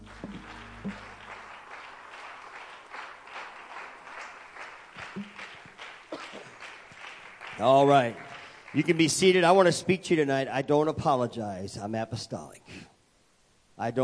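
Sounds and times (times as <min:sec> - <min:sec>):
audience hand clapping in praise: 0:00.0 - 0:09.7
speech: 0:07.6 - 0:12.8, 0:13.8 - 0:14.0.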